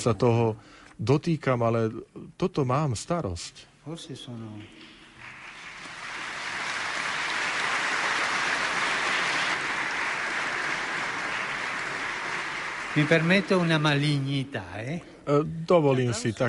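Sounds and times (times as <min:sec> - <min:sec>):
speech: 0:00.0 - 0:04.9, 0:13.0 - 0:16.4
audience applause begun by nuns: 0:05.2 - 0:14.4.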